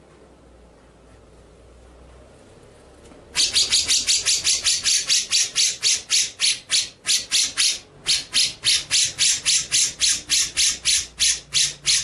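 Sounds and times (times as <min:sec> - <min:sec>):
white-rumped shama grating rasping notes: 0:03.4 - 0:12.0.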